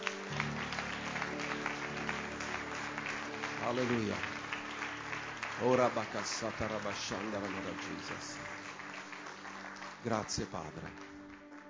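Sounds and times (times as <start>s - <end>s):
audience applauding: 0.0s - 11.6s
speech: 3.7s - 4.3s, 5.6s - 8.7s, 10.0s - 11.2s.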